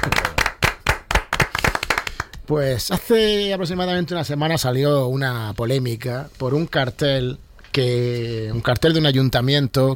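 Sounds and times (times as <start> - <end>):
speech: 0.0 - 0.3, 2.5 - 9.9
audience applause greeting a comic-book author's introduction: 0.0 - 2.2.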